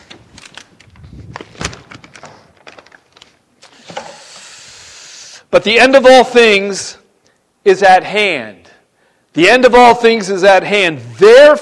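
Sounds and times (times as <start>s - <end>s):
water bottle being grabbed: 0.0s - 4.2s
speech: 5.5s - 7.0s, 7.6s - 8.6s, 9.3s - 11.5s.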